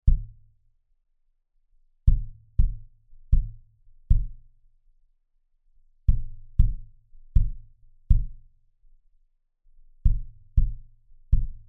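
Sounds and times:
modern omni kick drum: 0:00.0 - 0:00.6, 0:02.0 - 0:04.6, 0:06.1 - 0:08.6, 0:09.9 - 0:11.6.

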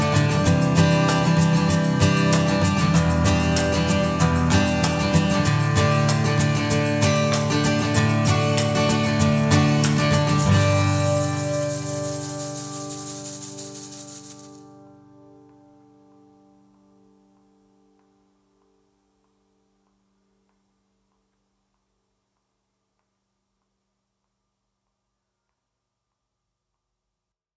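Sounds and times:
acoustic guitar percussion: 0:00.0 - 0:16.9.

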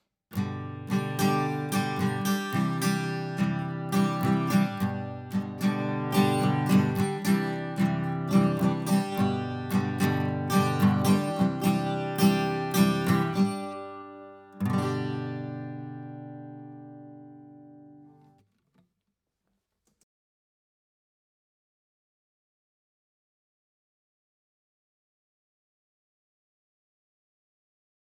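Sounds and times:
guitar playing: 0:00.4 - 0:18.2.

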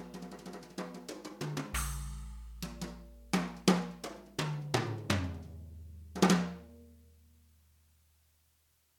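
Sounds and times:
drum kit played with brushes: 0:00.0 - 0:06.7.

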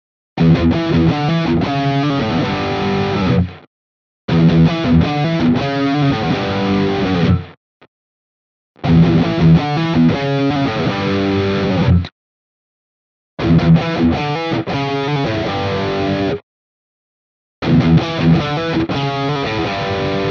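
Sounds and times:
Ibanez AR520HFM guitar rhythm riff in all pickup positions: 0:00.4 - 0:03.7, 0:04.3 - 0:07.6, 0:08.8 - 0:12.1, 0:13.4 - 0:16.4, 0:17.6 - 0:20.2.

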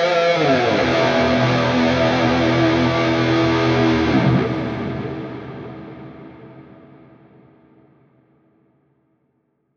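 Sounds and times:
high-gain electric guitar lead through amp plug-in: 0:00.0 - 0:07.3.

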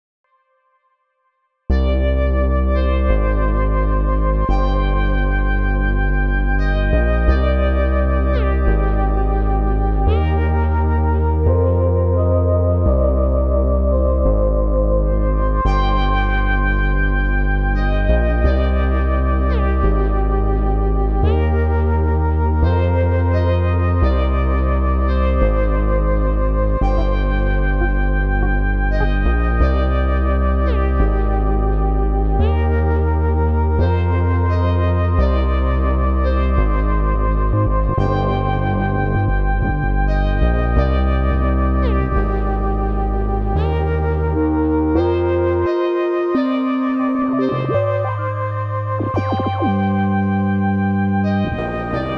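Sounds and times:
Elektron Digitone synthesizer keys: 0:01.7 - 0:52.1.

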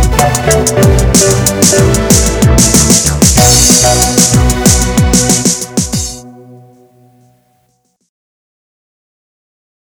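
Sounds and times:
techno music: 0:00.0 - 0:07.0.

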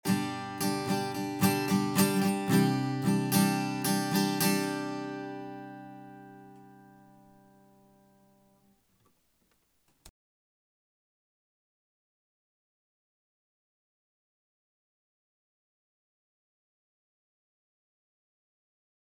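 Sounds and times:
reduced guitar through SSL SiX and Shure microphone: 0:00.0 - 0:08.7.

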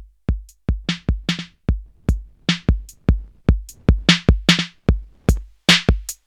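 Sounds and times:
Earthquaker Devices Zoar drum machine: 0:00.3 - 0:06.0.

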